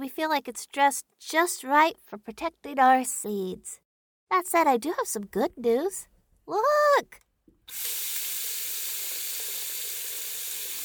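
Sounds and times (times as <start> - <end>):
speech: 0.1 - 8.2
running water: 7.7 - 10.8.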